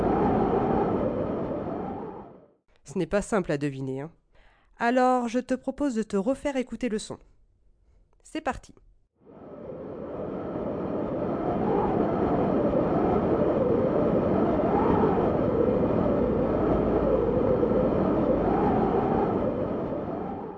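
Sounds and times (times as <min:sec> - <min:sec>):
cold wind blowing: 0:00.0 - 0:02.5, 0:09.3 - 0:20.5
speech: 0:02.9 - 0:04.2, 0:04.8 - 0:07.3, 0:08.2 - 0:08.9.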